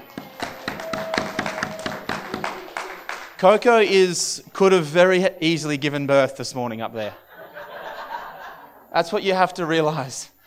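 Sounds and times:
audience applause: 0:00.0 - 0:03.5
speech: 0:03.4 - 0:07.2, 0:09.0 - 0:10.4
laughter: 0:07.2 - 0:08.9.

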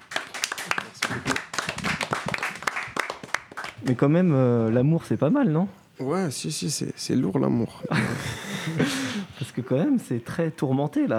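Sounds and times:
small group applauding: 0:00.0 - 0:03.9
speech: 0:03.8 - 0:11.1
laughter: 0:07.8 - 0:09.8.

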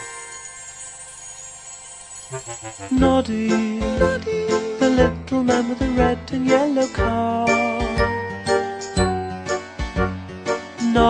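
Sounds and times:
tinkling bell: 0:00.0 - 0:04.6, 0:06.6 - 0:09.4
speech: 0:02.3 - 0:08.2.

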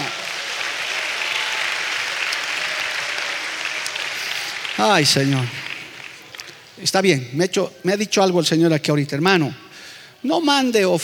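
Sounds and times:
audience applause: 0:00.0 - 0:06.8
speech: 0:04.8 - 0:05.6, 0:06.8 - 0:09.6, 0:10.2 - 0:11.0.

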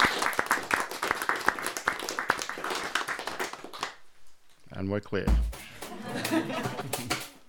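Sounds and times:
audience applause: 0:00.0 - 0:04.0
speech: 0:04.8 - 0:07.2
laughter: 0:05.6 - 0:07.4.

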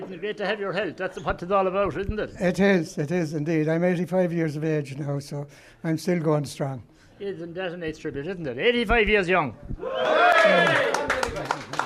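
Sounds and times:
speech: 0:00.1 - 0:11.0
crowd applauding and cheering: 0:09.8 - 0:11.8.

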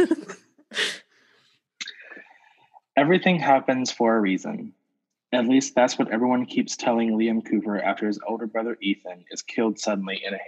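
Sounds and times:
speech: 0:00.0 - 0:00.4, 0:03.0 - 0:10.4
throat clearing: 0:01.8 - 0:02.2.

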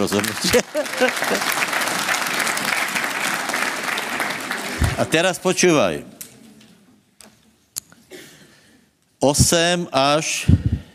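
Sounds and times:
speech: 0:00.0 - 0:02.2, 0:05.0 - 0:06.1, 0:09.2 - 0:10.7
audience applause: 0:00.0 - 0:05.4
laughter: 0:00.4 - 0:01.6.

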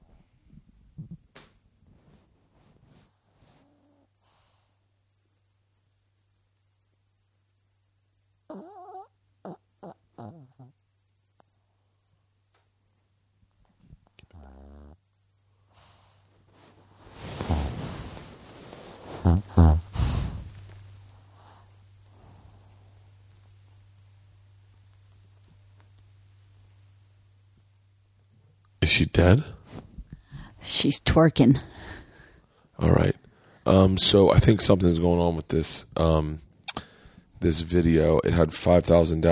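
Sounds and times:
dog snoring on the mic: 0:08.5 - 0:10.8, 0:14.1 - 0:15.0, 0:16.8 - 0:23.1
speech: 0:28.8 - 0:29.6, 0:30.6 - 0:31.7, 0:32.8 - 0:36.5, 0:37.4 - 0:39.3.

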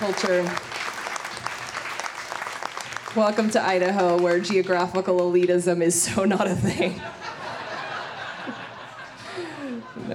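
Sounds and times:
speech: 0:00.0 - 0:00.8, 0:03.1 - 0:07.3, 0:10.0 - 0:10.1
audience applause: 0:00.0 - 0:05.4
laughter: 0:06.5 - 0:10.1.

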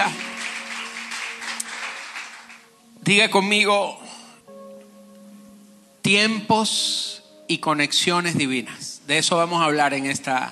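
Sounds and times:
applause: 0:00.0 - 0:02.8
speech: 0:03.1 - 0:04.1, 0:06.1 - 0:10.5.

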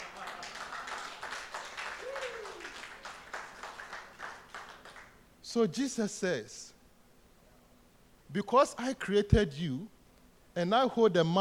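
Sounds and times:
audience clapping: 0:00.0 - 0:05.2
speech: 0:05.5 - 0:06.7, 0:08.4 - 0:10.0, 0:10.6 - 0:11.3.

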